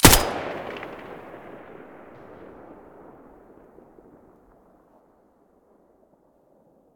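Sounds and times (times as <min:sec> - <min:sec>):
M4A1 rifle muzzle gunshot: 0:00.0 - 0:03.2.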